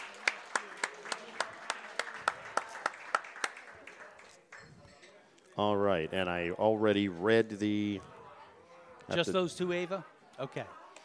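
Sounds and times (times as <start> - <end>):
applause for the girls soccer team at a school fall sports celebration: 0.0 - 5.0
speech: 5.6 - 8.1, 9.1 - 10.8.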